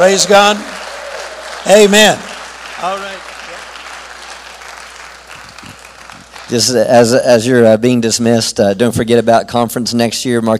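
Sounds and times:
speech: 0.0s - 0.9s, 1.6s - 3.4s, 6.5s - 10.5s
audience applause: 0.0s - 7.0s.

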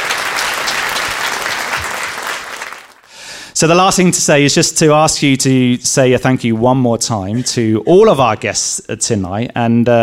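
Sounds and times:
audience round of applause: 0.0s - 3.1s
speech: 3.6s - 10.0s.

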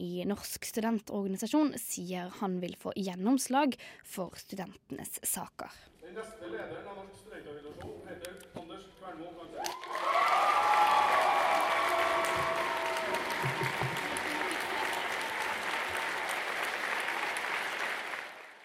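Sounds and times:
speech: 0.1s - 10.5s
crowd applause: 9.6s - 18.6s.

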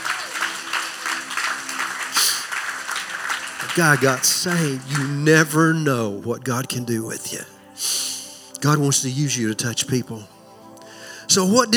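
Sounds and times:
audience clapping: 0.0s - 5.8s
speech: 3.7s - 7.5s, 8.6s - 10.4s, 11.3s - 11.7s.

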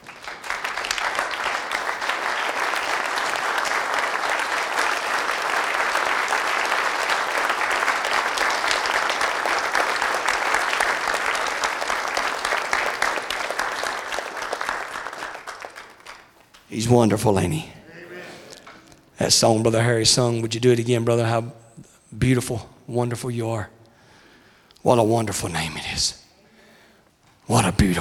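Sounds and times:
audience hand clapping in praise: 0.0s - 16.7s
speech: 16.8s - 17.8s, 19.2s - 21.6s, 22.2s - 23.8s, 24.8s - 26.2s.

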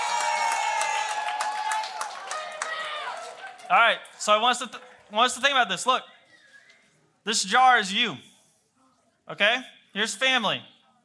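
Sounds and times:
audience applause: 0.0s - 5.2s
speech: 3.7s - 6.1s, 7.2s - 8.3s, 9.3s - 10.7s.

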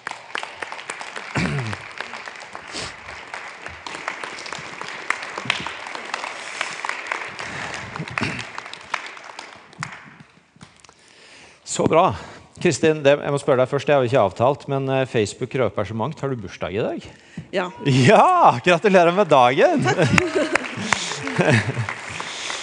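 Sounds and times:
audience clapping: 0.0s - 11.0s, 17.9s - 22.6s
speech: 11.8s - 20.6s, 21.4s - 21.9s
laughter: 19.1s - 22.6s.

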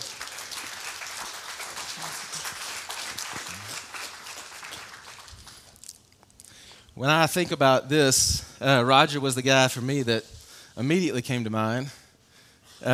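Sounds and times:
audience clapping: 0.0s - 6.1s
speech: 7.0s - 12.0s, 12.8s - 12.9s.

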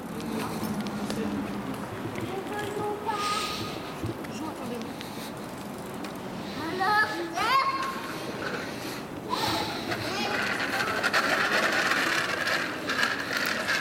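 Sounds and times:
outdoor bustle: 0.0s - 13.7s
children's voices calling outdoors: 2.2s - 5.3s, 6.4s - 13.4s.

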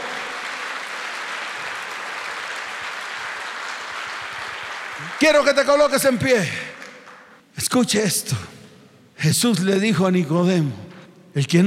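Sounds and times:
audience applause: 0.0s - 7.4s
speech: 5.0s - 6.7s, 7.6s - 8.6s, 9.2s - 11.6s.

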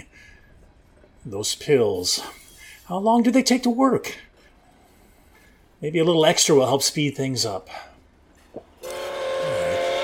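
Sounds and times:
speech: 1.2s - 4.3s, 5.8s - 7.9s
train passing: 8.8s - 10.0s.

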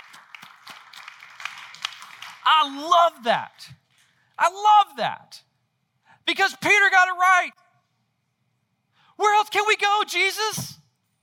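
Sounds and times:
audience clapping: 0.0s - 2.8s
speech: 2.5s - 3.8s, 4.4s - 5.5s, 6.3s - 7.6s, 9.2s - 10.8s.

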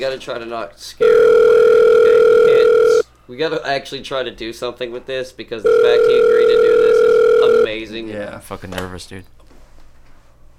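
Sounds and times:
speech: 0.0s - 1.5s, 3.3s - 6.8s, 7.5s - 9.4s
telephone dial tone while a call is being placed: 1.0s - 3.0s, 5.7s - 7.7s.

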